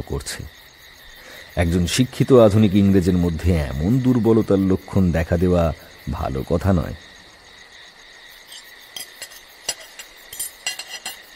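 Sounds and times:
speech: 0.0s - 0.6s, 1.6s - 7.1s
insects chirring: 0.0s - 11.3s
plate, knife and fork set on a table: 8.4s - 11.3s.

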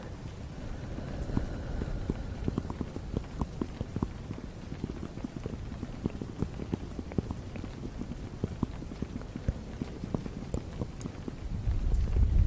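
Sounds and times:
soft breathy hiss: 0.0s - 7.0s
fast gentle tapping: 0.0s - 12.3s
low rumbling breath on a microphone: 0.1s - 6.1s.

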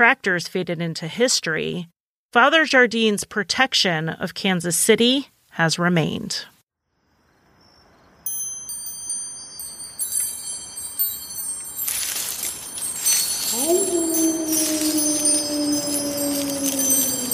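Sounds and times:
speech: 0.0s - 6.5s
wind chimes: 7.6s - 17.3s.

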